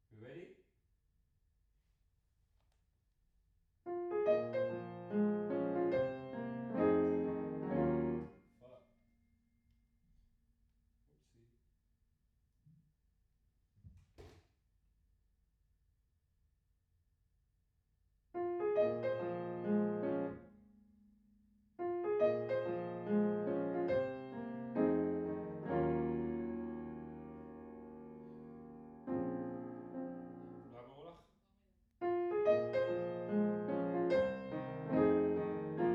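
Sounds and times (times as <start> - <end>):
piano in a room: 3.9 - 8.8, 18.4 - 30.8, 32.0 - 35.9.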